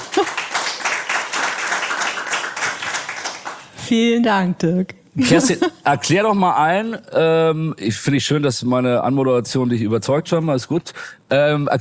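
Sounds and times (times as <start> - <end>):
audience applause: 0.0 - 3.7
speech: 3.9 - 11.7.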